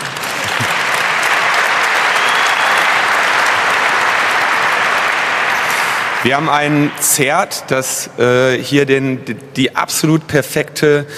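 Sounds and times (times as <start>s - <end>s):
large audience applause: 0.0s - 7.6s
speech: 6.2s - 11.1s.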